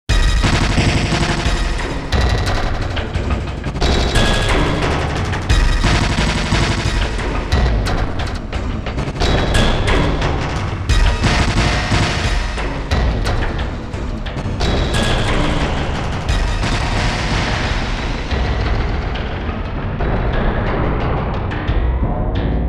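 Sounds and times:
Sequential Prophet X synthesizer disturbances: 0:00.1 - 0:22.6.

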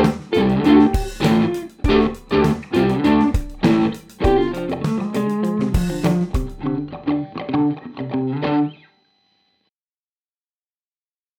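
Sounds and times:
guitar through Walrus Audio ACS1 amp simulator: 0:00.0 - 0:08.8.

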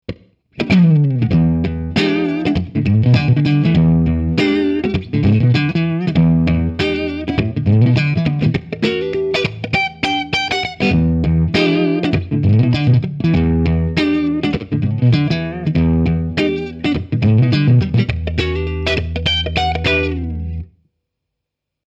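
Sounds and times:
clean electric guitar through Electro Harmonix 5MM: 0:00.1 - 0:20.8.

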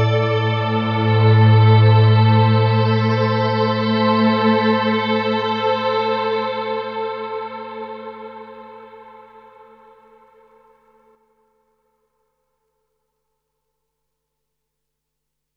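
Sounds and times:
ambient reverb: 0:00.0 - 0:06.5.

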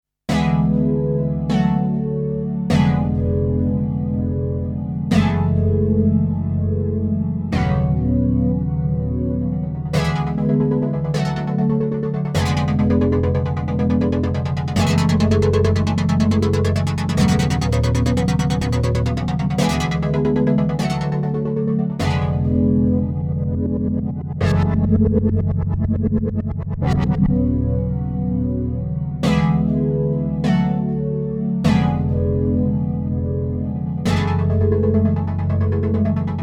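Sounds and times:
ASM Hydrasynth synthesizer ribbon soul patch: 0:00.3 - 0:36.4.

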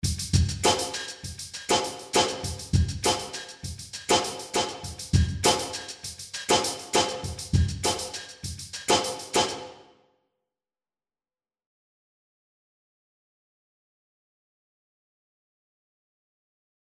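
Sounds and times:
drums in a small warm room: 0:00.0 - 0:09.8.

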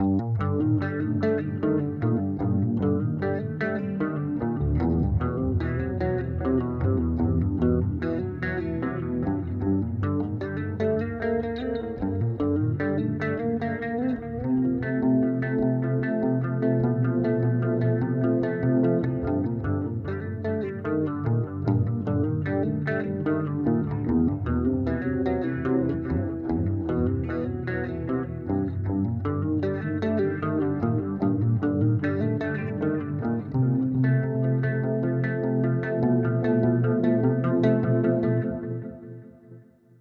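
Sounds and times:
Jazz Chorus guitar amplifier tone: 0:00.0 - 0:39.9.

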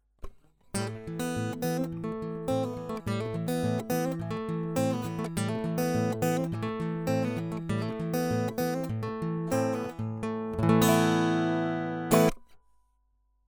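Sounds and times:
acoustic guitar recorded direct: 0:00.8 - 0:12.6.

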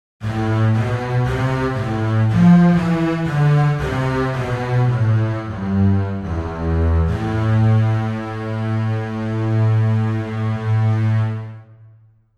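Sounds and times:
double basses playing: 0:00.2 - 0:11.8.

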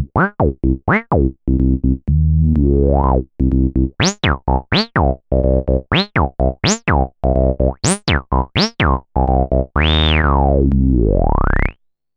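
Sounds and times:
acid filter synth: 0:00.2 - 0:11.8.

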